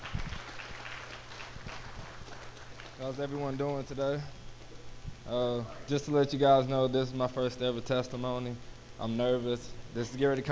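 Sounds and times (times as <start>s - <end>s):
audience applause: 0.0s - 3.2s
speech: 3.0s - 4.4s, 5.3s - 10.5s.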